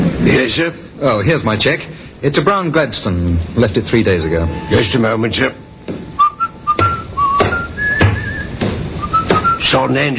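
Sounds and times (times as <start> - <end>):
speech: 0.4 - 5.6, 9.7 - 10.1
man whistling a tune: 6.2 - 9.8.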